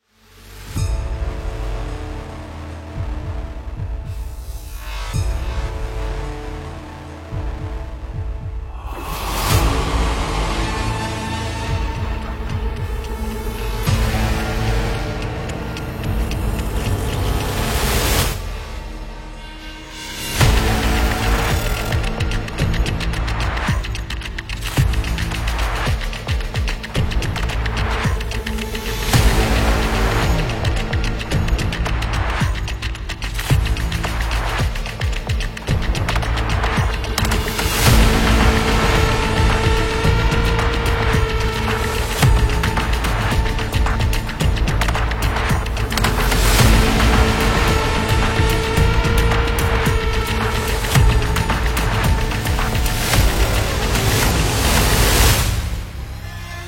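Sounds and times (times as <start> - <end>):
hybrid shooter game music: 0.2 - 56.6.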